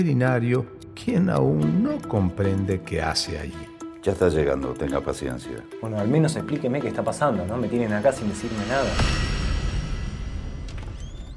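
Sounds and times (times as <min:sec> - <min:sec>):
speech: 0:00.0 - 0:09.4
door of a room opening: 0:10.5 - 0:11.3.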